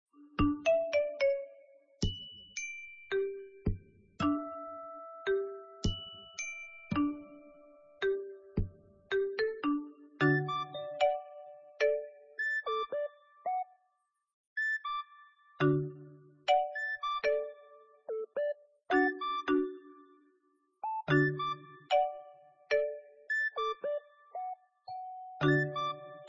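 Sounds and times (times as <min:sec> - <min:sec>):
background music: 0:00.0 - 0:13.7, 0:14.6 - 0:26.2.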